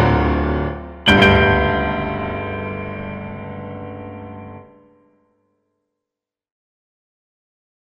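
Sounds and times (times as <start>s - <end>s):
piano rhapsody: 0.0s - 5.2s.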